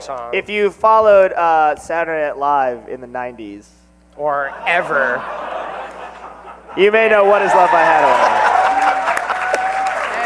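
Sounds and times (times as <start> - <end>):
speech: 0.0 - 5.8, 6.8 - 8.4
laughter: 4.4 - 10.2
uproarious applause: 7.2 - 10.2.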